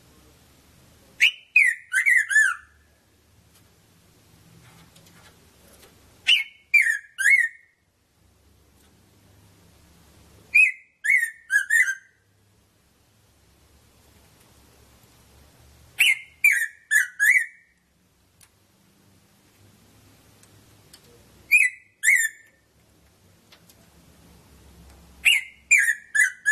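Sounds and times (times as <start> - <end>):
red-throated parrotfinch Erythrura psittacea calling: 1.2 - 2.8, 6.2 - 7.7, 10.5 - 12.2, 16.0 - 17.7, 21.5 - 22.6, 25.2 - 26.5.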